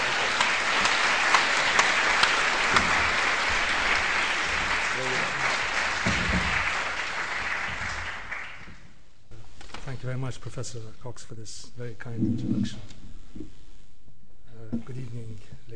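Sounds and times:
crowd applause: 0:00.0 - 0:08.9
speech: 0:10.0 - 0:13.6, 0:14.7 - 0:15.7.

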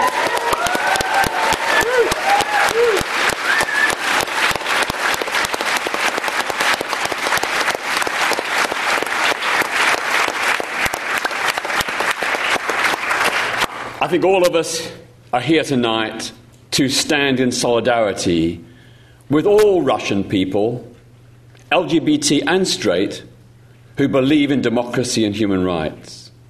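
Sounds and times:
loud audience applause and cheering: 0:00.0 - 0:14.0
speech: 0:14.1 - 0:18.7, 0:19.3 - 0:20.9, 0:21.7 - 0:23.3, 0:24.0 - 0:26.2.

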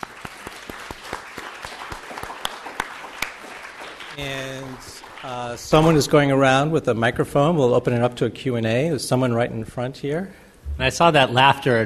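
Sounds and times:
audience applause: 0:00.0 - 0:06.0
speech: 0:04.2 - 0:11.8.

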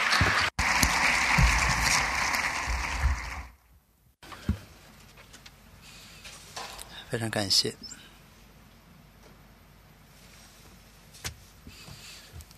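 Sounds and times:
audience clapping: 0:00.0 - 0:03.6
speech: 0:07.1 - 0:07.9.

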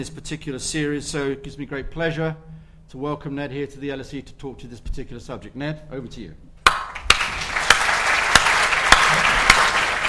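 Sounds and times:
speech: 0:00.0 - 0:06.5
audience applause: 0:06.9 - 0:10.0.

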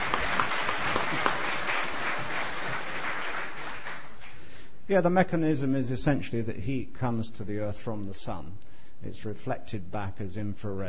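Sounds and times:
crowd applause: 0:00.0 - 0:04.4
speech: 0:04.9 - 0:10.8.

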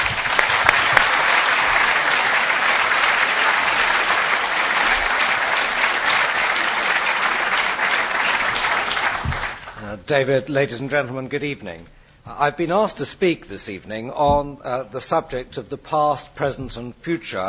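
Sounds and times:
audience applause welcoming a speaker to an evening lecture on oil: 0:00.0 - 0:09.8
speech: 0:10.1 - 0:17.4.

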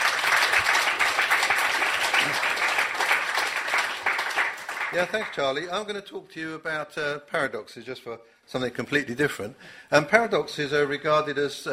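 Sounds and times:
crowd clapping: 0:00.0 - 0:05.8
speech: 0:04.9 - 0:11.7.

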